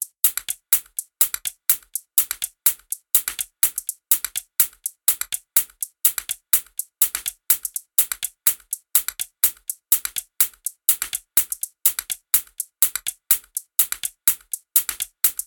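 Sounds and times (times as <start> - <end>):
124 bpm music beat: 0.0 - 15.4.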